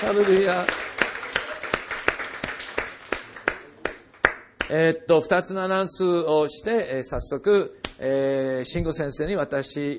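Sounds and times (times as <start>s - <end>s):
speech: 0.0s - 0.8s, 4.7s - 9.9s
audience rhythmic clapping: 0.0s - 4.8s.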